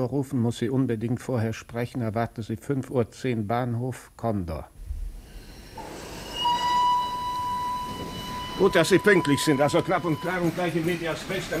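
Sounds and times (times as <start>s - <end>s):
speech: 0.0s - 4.8s, 8.6s - 11.5s
thin sustained high squealing tone: 5.2s - 11.3s
express train departing from station rumbling: 5.2s - 11.5s.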